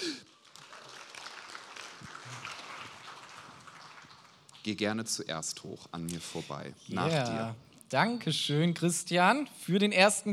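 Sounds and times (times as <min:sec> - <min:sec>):
applause: 0:00.0 - 0:04.4
speech: 0:04.6 - 0:10.3.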